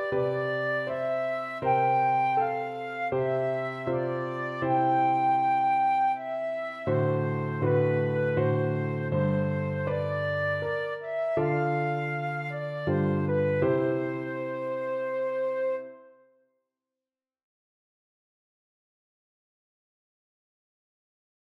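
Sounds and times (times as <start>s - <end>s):
flute: 0.0s - 16.4s.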